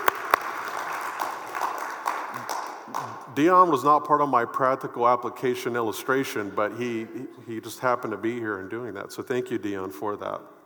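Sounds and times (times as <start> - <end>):
audience applause: 0.0 - 3.3
speech: 3.4 - 10.6.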